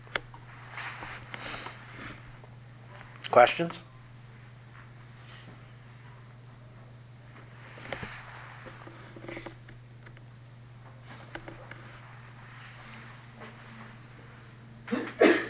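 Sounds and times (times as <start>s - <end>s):
steady low electrical hum: 0.0s - 15.4s
speech: 3.3s - 3.9s
single sharp sneeze: 14.9s - 15.4s.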